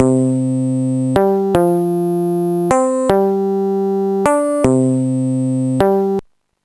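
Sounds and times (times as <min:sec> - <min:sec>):
bass: 0:00.0 - 0:06.2.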